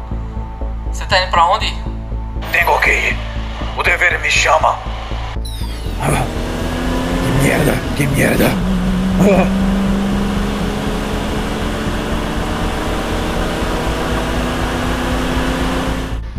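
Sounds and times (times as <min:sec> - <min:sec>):
speech: 0:00.9 - 0:01.9, 0:02.5 - 0:04.9, 0:06.0 - 0:06.3, 0:07.4 - 0:09.6
car engine rumble as the car pulls away: 0:05.5 - 0:16.3.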